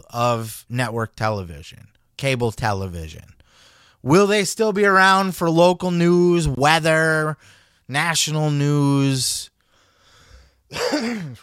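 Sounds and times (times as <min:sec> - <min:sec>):
speech: 0:00.1 - 0:09.5, 0:10.7 - 0:11.4
person coughing: 0:10.7 - 0:11.4.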